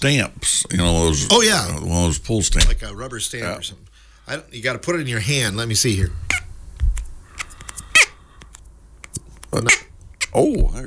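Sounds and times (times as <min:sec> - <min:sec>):
speech: 0:00.0 - 0:06.4, 0:09.5 - 0:10.8
duck-like squeaks: 0:06.3 - 0:06.5, 0:07.8 - 0:08.2, 0:09.6 - 0:10.4.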